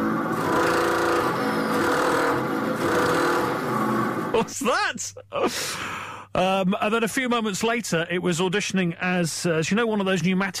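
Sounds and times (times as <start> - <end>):
radiator noise: 0.0 - 4.7
speech: 4.4 - 10.5.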